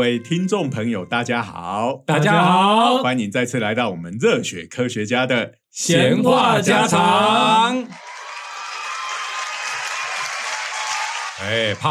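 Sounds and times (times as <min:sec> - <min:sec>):
speech: 0:00.0 - 0:08.1, 0:11.4 - 0:11.8
applause: 0:07.7 - 0:11.8.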